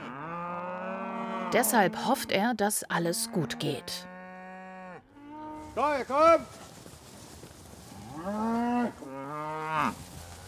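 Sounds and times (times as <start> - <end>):
cows mooing: 0.0 - 2.4, 3.0 - 5.8, 7.9 - 10.4
speech: 1.5 - 4.1, 5.8 - 6.7, 8.2 - 9.1, 9.8 - 10.0.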